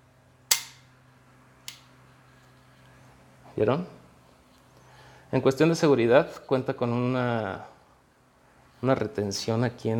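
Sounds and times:
pistol trigger pull: 0.5 - 0.8
pistol hammer click: 0.5 - 0.9, 1.7 - 1.9
speech: 3.6 - 4.0, 5.3 - 7.7, 8.8 - 9.9.

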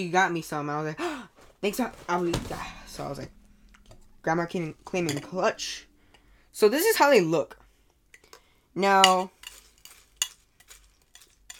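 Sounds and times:
speech: 0.0 - 3.4, 4.2 - 5.9, 6.6 - 7.6, 8.8 - 9.4
spoon stirring chocolate cereal in milk in a bowl: 9.0 - 11.5.

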